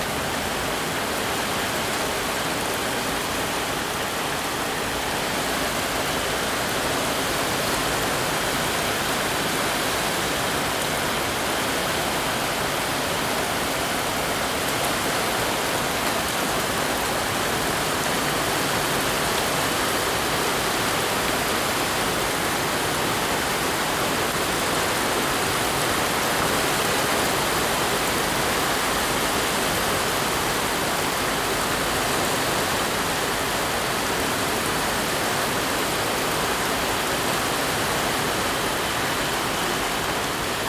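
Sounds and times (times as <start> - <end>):
torrential rain in a town: 0.0 - 40.6.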